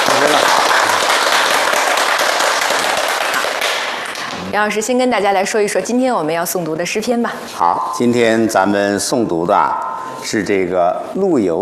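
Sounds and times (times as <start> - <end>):
audience applause: 0.0 - 4.3
speech: 4.5 - 11.6.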